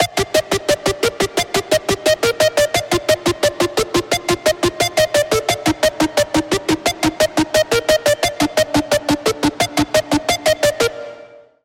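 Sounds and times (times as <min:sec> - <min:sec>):
lead melody: 0:00.0 - 0:11.5.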